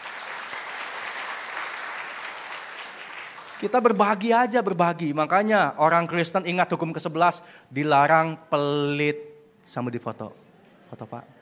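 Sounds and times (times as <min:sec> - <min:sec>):
audience applause: 0:00.0 - 0:03.9
speech: 0:03.6 - 0:11.4.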